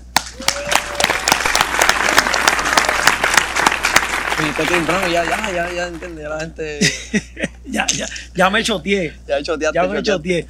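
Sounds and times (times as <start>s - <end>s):
audience applause: 0.4s - 6.2s
speech: 4.4s - 10.4s
laughter: 6.8s - 8.2s.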